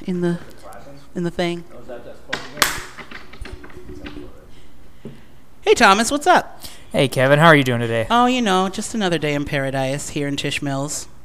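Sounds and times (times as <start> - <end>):
speech: 0.1 - 0.5, 1.2 - 1.7, 5.7 - 11.1
hand clap for recording sync: 2.3 - 3.5.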